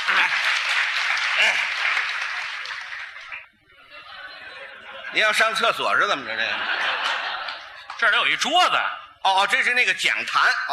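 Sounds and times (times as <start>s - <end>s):
audience applause greeting a guest coming on stage: 0.0s - 3.5s
laughter: 0.0s - 8.3s
speech: 1.4s - 2.0s, 5.2s - 6.9s, 8.0s - 10.7s.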